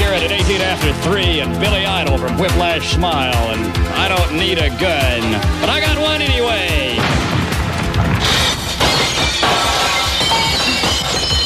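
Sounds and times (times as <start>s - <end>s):
speech: 0.6s - 7.3s
window glass shattering: 7.0s - 11.4s.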